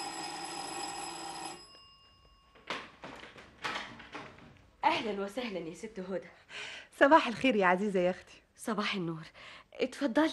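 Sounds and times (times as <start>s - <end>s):
doorbell ringing with a buzzing metallic tone: 0.0s - 3.1s
speech: 4.9s - 10.3s.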